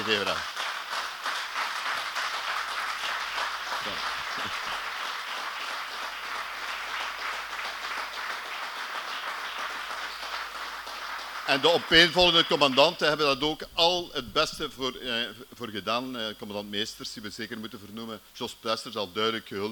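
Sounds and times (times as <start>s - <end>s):
audience applause: 0.0s - 13.0s
speech: 0.1s - 0.6s, 11.5s - 19.7s.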